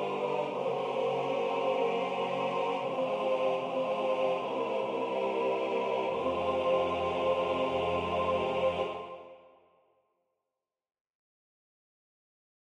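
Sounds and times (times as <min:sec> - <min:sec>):
SATB choir singing: 0:00.0 - 0:09.7.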